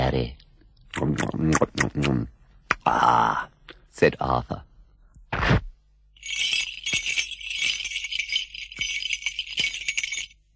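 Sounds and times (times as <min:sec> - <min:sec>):
speech: 0:00.1 - 0:04.7
distant bells jingling: 0:06.2 - 0:10.5.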